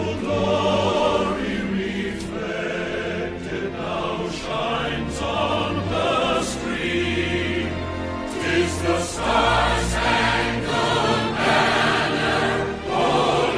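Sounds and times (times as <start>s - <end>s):
anthem music: 0.0s - 13.5s.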